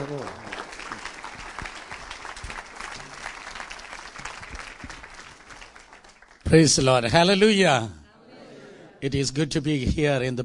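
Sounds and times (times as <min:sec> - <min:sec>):
church audience applauding to welcome a guest pastor: 0:00.0 - 0:06.7
speech: 0:06.5 - 0:08.0, 0:09.0 - 0:10.4.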